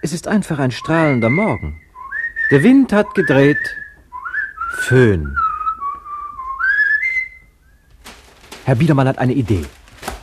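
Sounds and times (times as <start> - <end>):
speech: 0.0 - 1.8, 2.5 - 3.8, 4.7 - 5.4, 8.7 - 9.8
man whistling a tune: 0.7 - 7.9.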